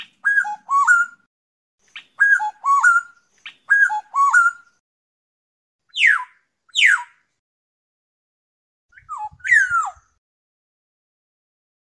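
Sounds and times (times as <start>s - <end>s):
black-naped oriole fluting whistles: 0.2s - 1.3s, 2.0s - 4.8s, 5.9s - 7.2s, 8.9s - 10.2s.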